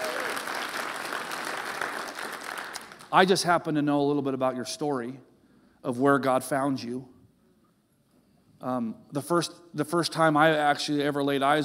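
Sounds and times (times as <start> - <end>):
audience applause: 0.0 - 3.1
speech: 3.1 - 7.1, 8.6 - 11.6.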